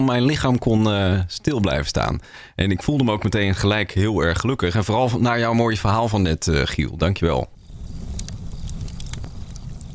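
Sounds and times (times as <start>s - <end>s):
speech: 0.0s - 7.6s
fire crackling in a fireplace: 7.2s - 9.9s.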